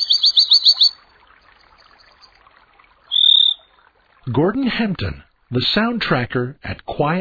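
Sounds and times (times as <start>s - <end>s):
songbird singing, meadowlark or dipper: 0.0s - 1.0s, 3.1s - 3.7s
speech: 4.3s - 7.1s.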